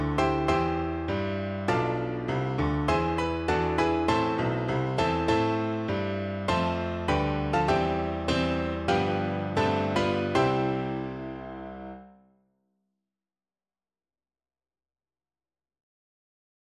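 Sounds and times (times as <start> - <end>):
national anthem on piano: 0.0 - 12.2.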